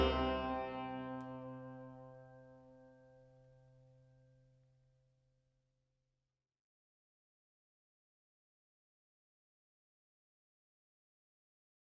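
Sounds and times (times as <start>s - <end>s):
bass tar playing: 0.0s - 1.6s.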